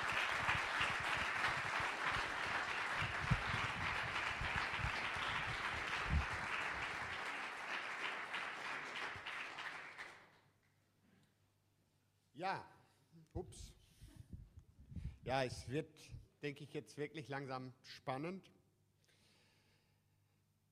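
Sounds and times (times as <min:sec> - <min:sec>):
audience applause: 0:00.0 - 0:10.3
speech: 0:12.4 - 0:12.7, 0:13.4 - 0:13.8, 0:15.3 - 0:18.6.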